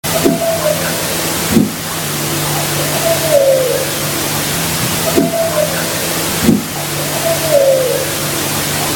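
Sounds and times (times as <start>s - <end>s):
strange call at dusk: 0.0s - 8.9s.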